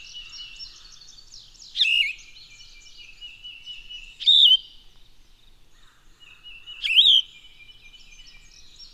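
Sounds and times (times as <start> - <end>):
bird song whistled phrases: 1.7 - 4.8, 6.5 - 8.6.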